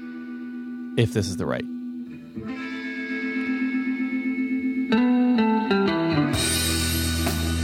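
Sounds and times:
sustained guitar-like tone: 0.0 - 7.0
speech: 1.0 - 1.8
band song played from Spotify: 5.7 - 7.6.

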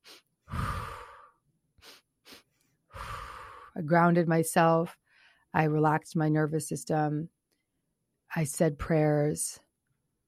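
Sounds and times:
slow deliberate breathing in a calming exercise: 0.0 - 3.8
speech: 3.8 - 7.4, 8.3 - 9.6.

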